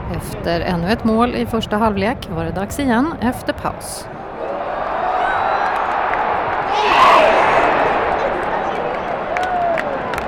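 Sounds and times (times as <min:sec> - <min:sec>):
speech: 0:00.1 - 0:04.2
stadium crowd cheering and applauding: 0:04.2 - 0:10.2.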